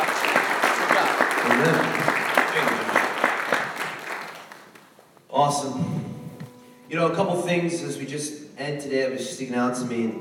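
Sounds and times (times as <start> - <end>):
crowd clapping: 0.0 - 5.0
speech: 5.4 - 6.1, 6.9 - 10.1.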